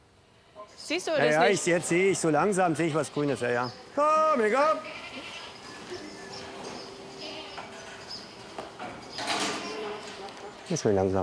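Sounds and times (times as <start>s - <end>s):
speech: 0.9s - 5.3s, 10.7s - 11.2s
goats in a farm herd: 4.5s - 11.2s.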